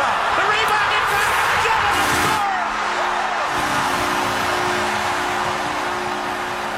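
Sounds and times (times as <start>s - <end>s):
cheering arena crowd: 0.0s - 6.7s
hockey arena goal horn blaring: 1.7s - 6.7s.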